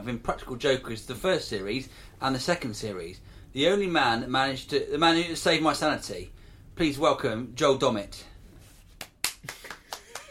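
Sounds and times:
speech: 0.0 - 8.3
sparse handclaps: 9.0 - 10.2.

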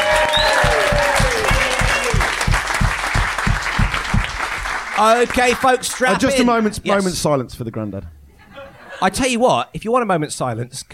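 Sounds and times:
round of applause: 0.0 - 6.3
speech: 5.0 - 8.2, 9.0 - 10.9.

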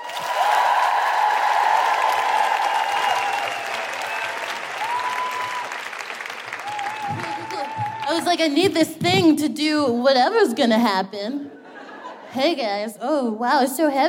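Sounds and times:
whoops: 0.0 - 5.9, 6.5 - 8.2
live comedy audience applauding and cheering for a performer: 0.0 - 8.4
speech: 8.2 - 11.5, 12.3 - 14.0.

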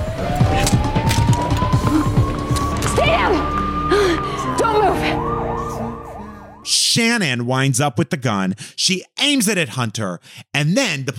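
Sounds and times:
police siren wailing: 0.0 - 6.8
speech: 7.0 - 11.1.

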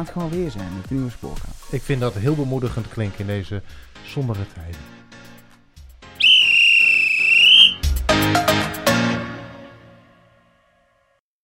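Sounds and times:
speech: 0.0 - 5.0
whistle blown: 6.2 - 8.0.

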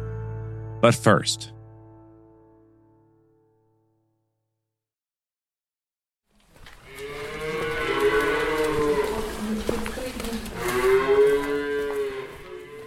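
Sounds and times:
speech: 0.8 - 1.6
cattle mooing on a large farm near Chernihiv in northern Ukraine: 6.8 - 12.8.

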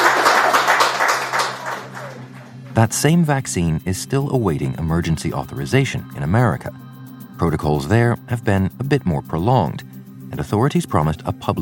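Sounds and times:
round of applause: 0.0 - 2.7
speech: 2.8 - 11.5.

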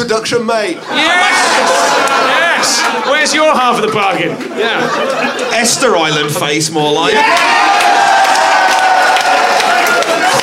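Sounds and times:
speech: 0.1 - 8.8
laughter: 0.8 - 7.2
audience applause and cheering: 0.9 - 3.3, 7.1 - 10.4.

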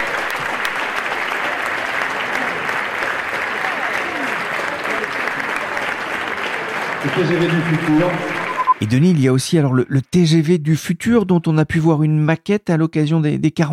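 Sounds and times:
audience applause: 0.0 - 9.4
speech: 7.0 - 13.7.

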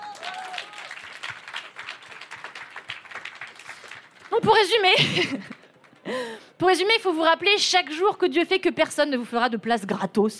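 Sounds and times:
audience applause: 0.0 - 6.3
speech: 4.3 - 5.5, 6.1 - 10.3
laughter: 4.8 - 5.7.

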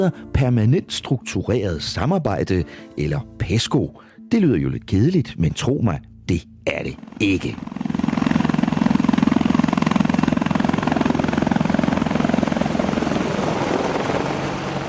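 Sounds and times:
speech: 0.0 - 7.8
German Tiger Eurocopter attack helicopter flying past: 7.0 - 14.8.

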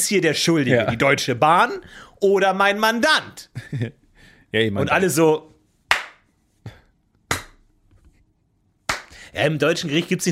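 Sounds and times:
speech: 0.0 - 5.5, 9.4 - 10.3
one person clapping hands: 5.9 - 6.3, 7.3 - 7.6, 8.9 - 9.2.

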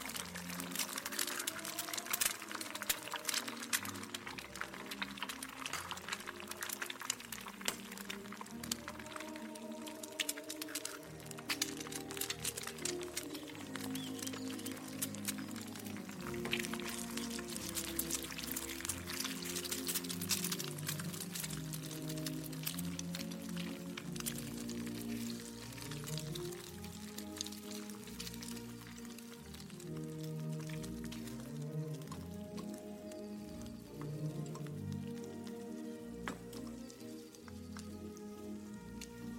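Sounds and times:
kitchen crackles, clicks and squishy sounds: 0.0 - 39.3
old-time music: 0.0 - 39.3.

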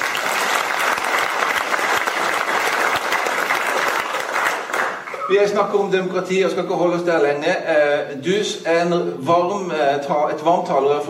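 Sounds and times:
audience applause welcoming a returning guest: 0.0 - 5.4
speech: 5.3 - 11.0.

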